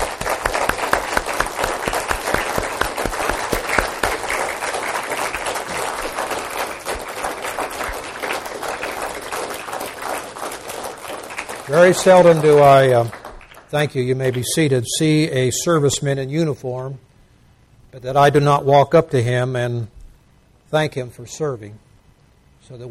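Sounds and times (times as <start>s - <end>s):
audience applause: 0.0s - 14.4s
speech: 11.7s - 17.1s, 18.0s - 20.0s, 20.7s - 21.8s, 22.6s - 22.8s.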